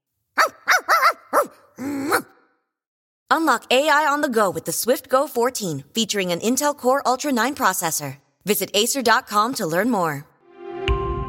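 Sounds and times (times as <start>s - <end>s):
dog barking at the mailman: 0.4s - 2.5s
speech: 3.3s - 10.3s.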